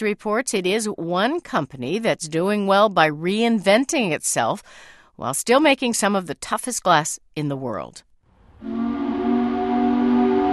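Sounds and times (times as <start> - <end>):
speech: 0.0 - 8.8
factory shift change whistle in Corning, New York: 8.5 - 10.5.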